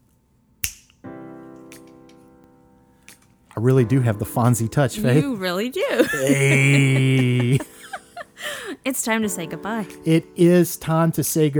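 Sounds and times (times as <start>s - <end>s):
finger snap: 0.6s - 2.3s, 3.0s - 3.6s, 9.9s - 10.1s
speech: 3.6s - 7.7s, 8.8s - 11.5s
laughter: 5.0s - 8.9s.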